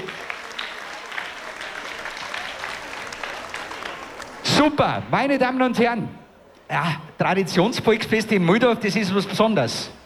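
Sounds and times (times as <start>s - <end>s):
audience applause in the Inbräu-Festzelt festival tent: 0.0s - 4.5s
speech: 4.6s - 10.0s.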